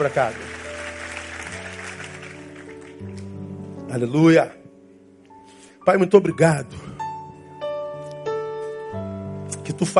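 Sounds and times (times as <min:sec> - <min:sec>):
speech: 0:00.0 - 0:00.5, 0:03.9 - 0:04.6, 0:05.8 - 0:06.9, 0:09.7 - 0:09.9
audience applause: 0:00.0 - 0:03.2.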